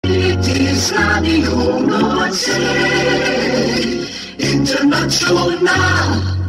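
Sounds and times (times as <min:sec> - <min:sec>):
tune: 0:00.0 - 0:06.4.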